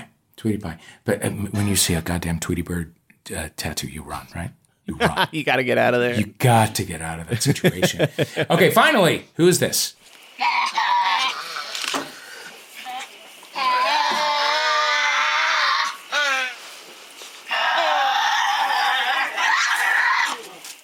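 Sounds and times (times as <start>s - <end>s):
speech: 0.4s - 10.6s
laughter: 4.9s - 5.4s, 7.3s - 8.7s
Tasmanian devil screeching: 10.3s - 20.8s.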